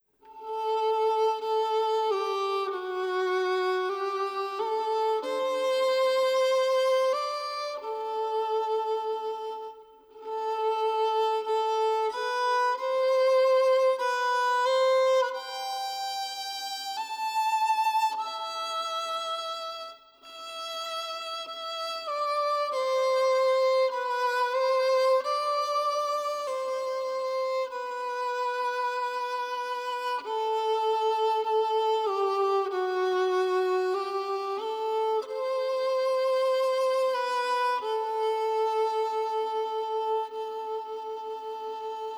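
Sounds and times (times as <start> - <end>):
sad violin: 0.0 - 42.1.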